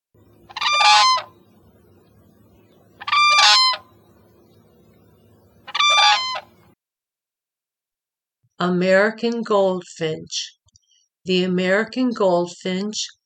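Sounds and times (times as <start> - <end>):
faint low hum: 0.2 - 6.8
whooping cranes bugling in unison: 0.4 - 2.0, 2.8 - 4.1, 5.6 - 6.6
speech: 8.6 - 10.6, 11.2 - 13.2.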